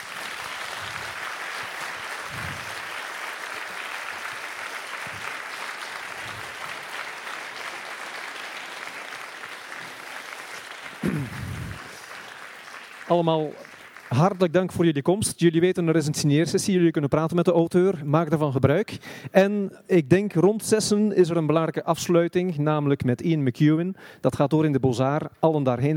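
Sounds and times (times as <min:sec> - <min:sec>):
audience applause: 0:00.0 - 0:14.7
speech: 0:13.1 - 0:25.9.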